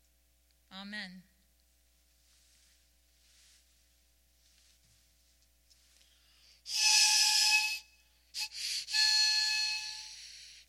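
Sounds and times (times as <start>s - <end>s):
speech: 0.8s - 1.3s
shepherd's whistle calling sheep: 6.7s - 10.6s.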